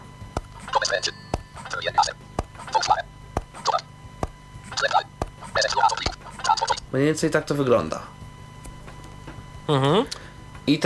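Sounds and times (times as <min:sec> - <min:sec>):
speech: 0:01.0 - 0:01.2, 0:01.8 - 0:02.3, 0:06.9 - 0:08.2, 0:09.7 - 0:10.8
sharp crisp taps on a phone screen: 0:02.4 - 0:05.6.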